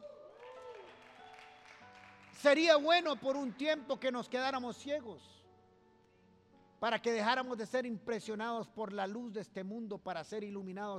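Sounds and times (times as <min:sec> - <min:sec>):
voices cheering: 0:00.0 - 0:01.4
audience applauding: 0:00.0 - 0:04.1
speech: 0:02.4 - 0:05.4, 0:06.8 - 0:10.9.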